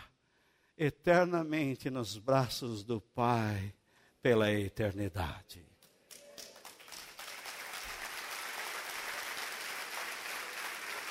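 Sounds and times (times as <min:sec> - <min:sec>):
speech: 0:00.8 - 0:05.7
audience applause: 0:06.3 - 0:11.0.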